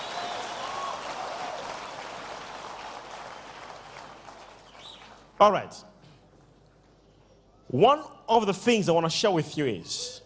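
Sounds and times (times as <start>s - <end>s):
audience clapping hands: 0.0s - 5.6s
speech: 5.4s - 5.9s, 7.7s - 10.2s.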